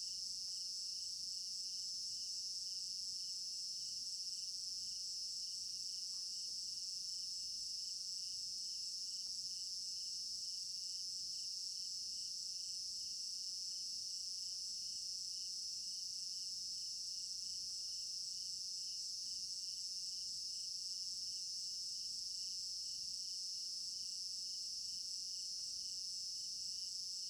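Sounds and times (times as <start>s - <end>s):
cricket chorus: 0.0s - 27.2s.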